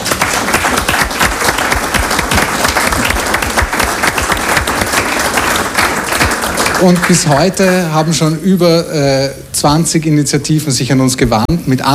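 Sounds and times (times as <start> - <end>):
audience applause: 0.0 - 7.6
speech: 6.8 - 11.9.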